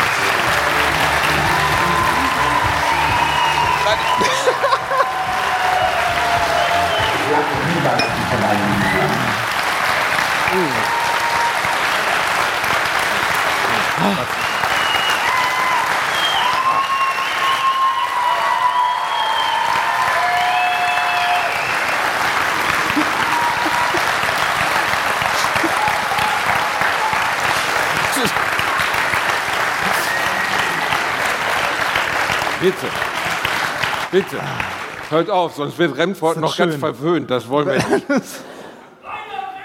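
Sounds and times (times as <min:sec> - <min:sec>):
applause from a large audience: 0:00.0 - 0:35.5
laughter: 0:00.6 - 0:05.8, 0:13.6 - 0:14.5, 0:22.5 - 0:26.4, 0:37.6 - 0:39.0
whistles and cheers: 0:01.0 - 0:09.2, 0:10.3 - 0:12.2, 0:14.3 - 0:27.5, 0:29.7 - 0:31.0
speech: 0:34.2 - 0:38.5.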